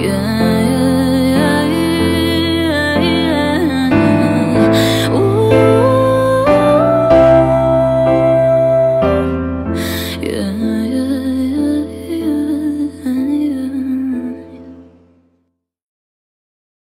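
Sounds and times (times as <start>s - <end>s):
acoustic music: 0.0s - 15.2s.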